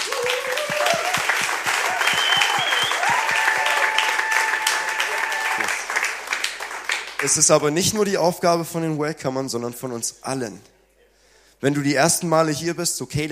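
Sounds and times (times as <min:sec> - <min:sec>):
audience applause: 0:00.0 - 0:07.5
speech: 0:07.2 - 0:10.8, 0:11.6 - 0:13.3.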